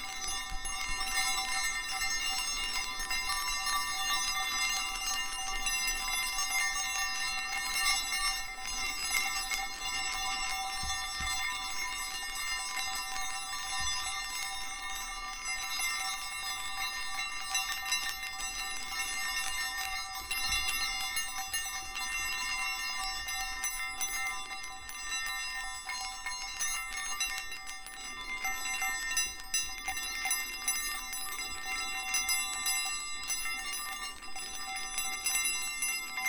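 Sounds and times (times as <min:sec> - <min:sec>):
Chinese yinyang balls chiming: 0:00.0 - 0:36.2.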